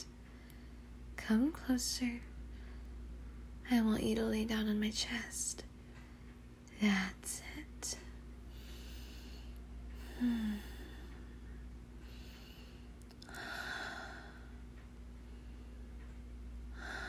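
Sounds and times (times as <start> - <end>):
faint low hum: 0.0 - 17.0
woman breathing slowly and softly in a calm cuddling role-play: 0.2 - 1.0, 2.4 - 3.5, 7.9 - 17.0
speech: 1.3 - 2.3, 3.7 - 5.7, 6.8 - 8.0.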